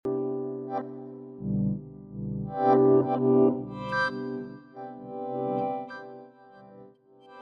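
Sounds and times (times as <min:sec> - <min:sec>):
piano: 0:00.0 - 0:07.3.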